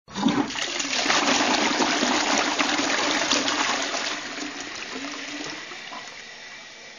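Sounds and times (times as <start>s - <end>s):
toilet flushing: 0.1s - 6.9s.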